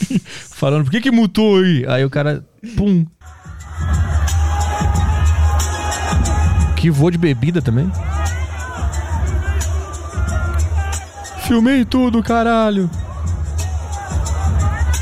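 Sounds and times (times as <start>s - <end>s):
man talking excitedly: 0.6s - 3.1s, 6.7s - 8.5s, 10.8s - 13.0s
speech: 0.6s - 3.2s, 6.8s - 8.1s, 11.5s - 13.0s
audience crowd roar during stage invasion: 3.2s - 11.6s, 12.3s - 15.0s
people yelling: 3.2s - 11.8s, 12.4s - 15.0s.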